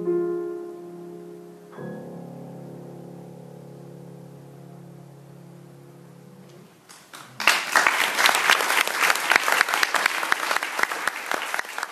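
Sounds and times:
audience clapping: 6.9s - 11.9s.

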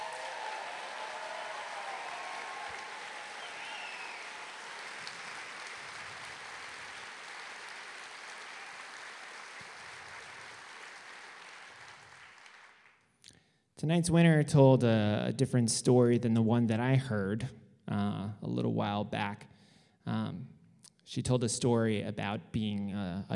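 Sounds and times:
audience applause for storytellers at a storytelling event: 0.0s - 13.1s
speech: 13.8s - 17.6s, 18.7s - 23.3s.

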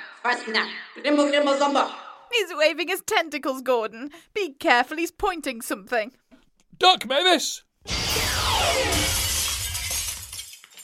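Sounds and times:
speech: 0.2s - 6.2s, 6.8s - 8.0s
greenhouse glass shattering: 7.9s - 10.8s
falling greenhouse glass shards tinkling: 8.8s - 10.8s.

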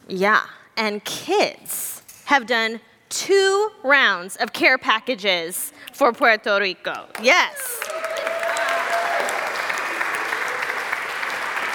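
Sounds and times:
speech: 0.1s - 7.8s
applause: 7.1s - 11.7s.

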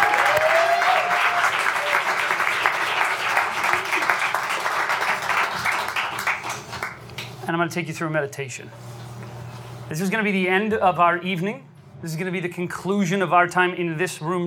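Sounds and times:
audience applause: 0.0s - 7.0s
speech: 7.6s - 8.9s, 9.9s - 14.4s.

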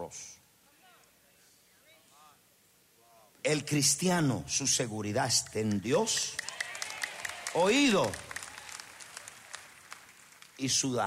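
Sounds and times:
speech: 0.1s - 0.3s, 3.4s - 6.5s, 7.6s - 8.3s, 10.6s - 11.0s
audience applause: 6.0s - 11.0s.

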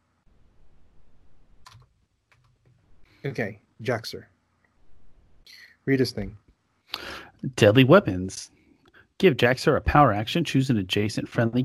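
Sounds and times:
typing a name on a computer keyboard: 1.6s - 2.6s
speech: 3.2s - 4.4s, 5.8s - 6.4s, 7.4s - 8.6s, 9.2s - 11.6s.

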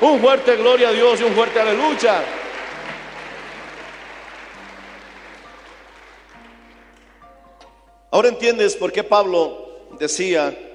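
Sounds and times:
speech: 0.0s - 2.4s, 8.1s - 10.7s
audience applause: 0.0s - 7.3s.

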